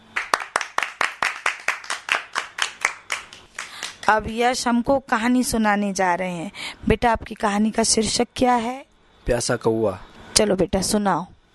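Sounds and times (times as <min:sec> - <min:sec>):
group clapping hands in unison: 0:00.0 - 0:04.3
speech: 0:04.1 - 0:11.3.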